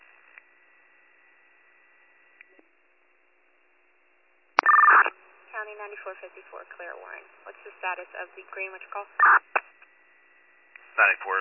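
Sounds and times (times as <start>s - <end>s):
dispatch paging tones over a radio: 4.6s - 5.1s, 9.0s - 9.5s
light radio static: 4.6s - 10.0s, 10.8s - 11.3s
speech: 5.7s - 9.5s, 11.0s - 11.3s.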